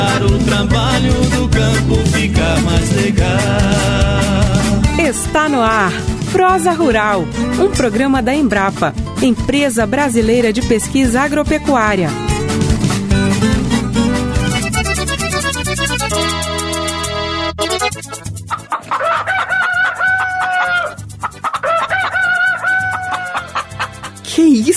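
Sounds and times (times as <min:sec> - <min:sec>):
music: 0:00.0 - 0:24.7
speech: 0:05.1 - 0:12.3
rooster crowing: 0:18.7 - 0:23.6.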